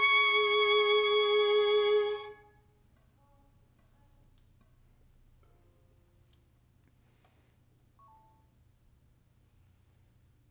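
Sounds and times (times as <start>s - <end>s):
violin: 0.0s - 2.5s.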